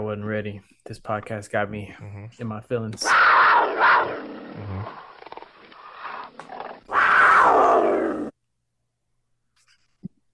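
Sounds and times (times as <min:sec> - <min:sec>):
speech: 0:00.0 - 0:05.1
lion roar: 0:03.0 - 0:08.4.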